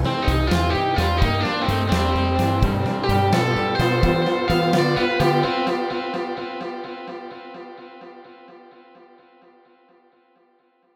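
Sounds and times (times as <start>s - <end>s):
MIDI blues music: 0.0s - 8.3s.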